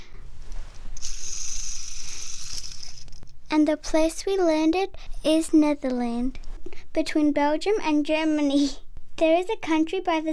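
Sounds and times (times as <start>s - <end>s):
globe being spun with ratcheting clicks: 1.0s - 3.4s
speech: 3.5s - 10.3s.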